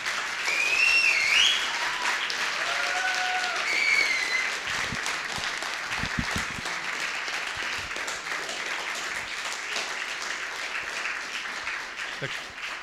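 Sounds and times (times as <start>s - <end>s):
crowd applauding for the kitchen staff: 0.0s - 12.8s
shrill whistles: 0.5s - 2.0s, 3.6s - 4.6s.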